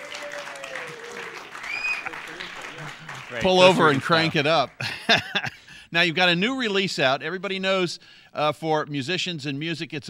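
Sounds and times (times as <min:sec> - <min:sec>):
audience applause: 0:00.0 - 0:04.6
laughter: 0:01.9 - 0:05.6
speech: 0:03.3 - 0:10.0.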